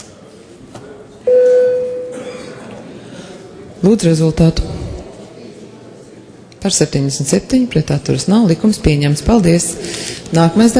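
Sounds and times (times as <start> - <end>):
low murmur: 0.0 - 10.7
parliamentary bell signalling the vote: 1.3 - 2.2
speech: 3.8 - 4.8, 6.6 - 10.7.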